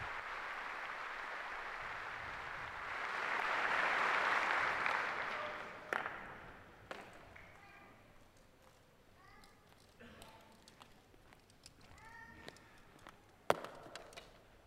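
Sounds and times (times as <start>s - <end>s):
large assembly crowd cheering and applauding: 0.0s - 6.6s.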